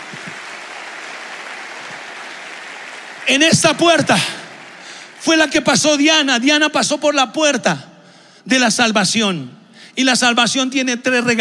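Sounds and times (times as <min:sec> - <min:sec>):
audience applauding loudly: 0:00.0 - 0:05.9
speech: 0:03.3 - 0:04.4, 0:05.2 - 0:11.3.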